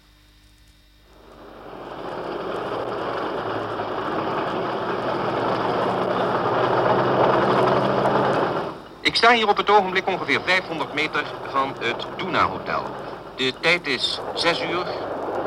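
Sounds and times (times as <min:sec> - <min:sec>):
long column of tanks rumbling past: 0:01.1 - 0:15.4
speech: 0:09.1 - 0:15.1.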